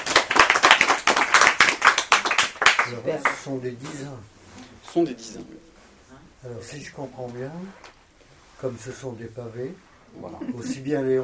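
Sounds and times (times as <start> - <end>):
audience clapping: 0.0 - 3.6
speech: 2.9 - 5.7, 6.4 - 8.0, 8.6 - 11.2.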